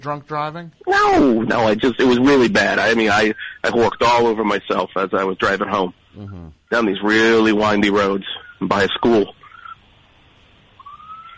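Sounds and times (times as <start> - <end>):
speech: 0.0 - 9.4
hiss: 0.0 - 11.3
police car siren wailing: 10.8 - 11.3.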